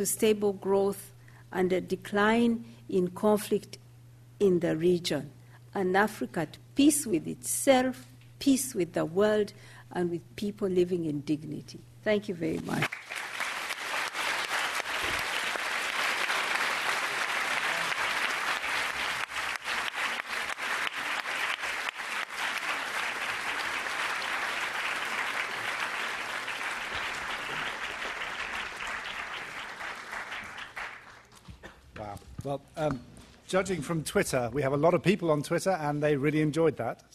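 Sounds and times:
speech: 0:00.0 - 0:03.8, 0:04.4 - 0:13.0, 0:33.5 - 0:37.1
large audience applause after a speech: 0:12.8 - 0:31.6.

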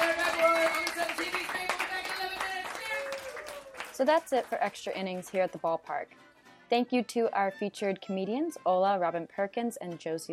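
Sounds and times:
audience round of applause: 0:00.0 - 0:04.9
speech: 0:04.0 - 0:10.3.

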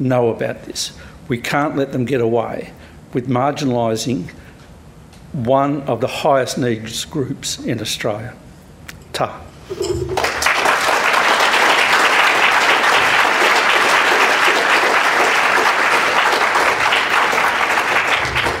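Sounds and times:
speech: 0:00.0 - 0:04.4, 0:05.3 - 0:08.4, 0:09.2 - 0:10.2
audience clapping: 0:10.0 - 0:18.5.

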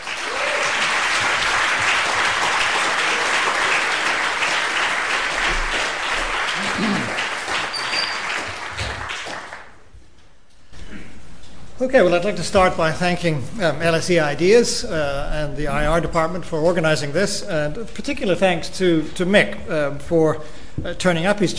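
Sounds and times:
audience round of applause: 0:00.0 - 0:09.8
speech: 0:11.8 - 0:21.5.

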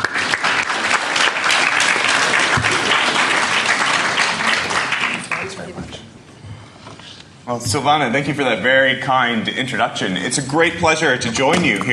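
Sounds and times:
audience applause: 0:00.0 - 0:05.8
speech: 0:07.5 - 0:11.9.

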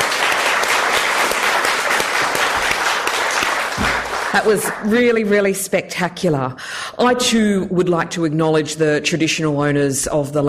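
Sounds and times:
audience applause after a World AIDS Day speech: 0:00.0 - 0:04.9
speech: 0:04.4 - 0:10.4.

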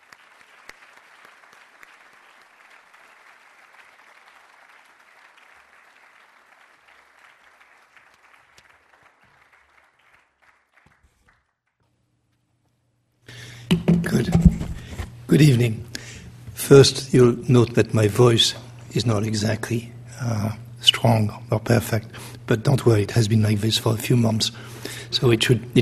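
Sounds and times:
audience applause welcoming lecturer: 0:00.0 - 0:11.5
speech: 0:13.7 - 0:14.6, 0:15.3 - 0:15.9, 0:16.7 - 0:25.8.

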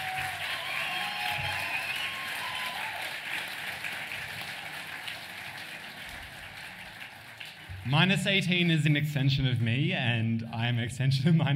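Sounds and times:
audience applause: 0:00.0 - 0:08.7
speech: 0:07.9 - 0:11.5.

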